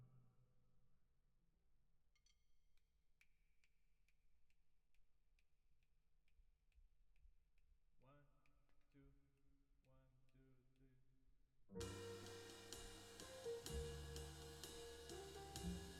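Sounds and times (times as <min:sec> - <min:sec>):
drums with reverb: 0:11.8 - 0:15.9.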